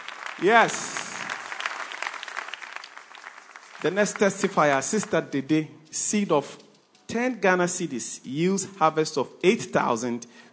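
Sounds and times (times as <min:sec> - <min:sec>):
people clapping hands: 0:00.0 - 0:05.3
speech: 0:00.4 - 0:01.0, 0:03.8 - 0:10.5.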